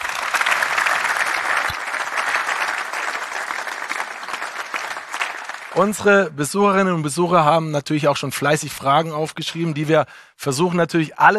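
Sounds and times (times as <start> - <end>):
audience applause: 0.0 - 6.1
speech: 5.8 - 11.3.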